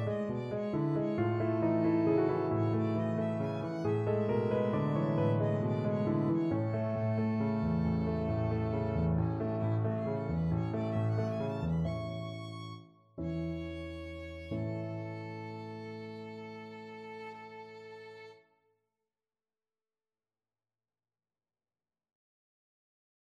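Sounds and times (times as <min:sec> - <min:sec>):
violin nocturne in D flat: 0:00.0 - 0:18.4.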